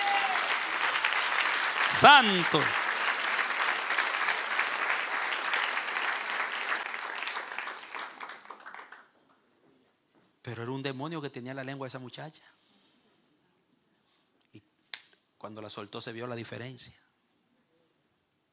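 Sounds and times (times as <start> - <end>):
audience applause: 0.0 - 9.1
speech: 1.9 - 2.8, 10.5 - 12.6, 15.4 - 17.0.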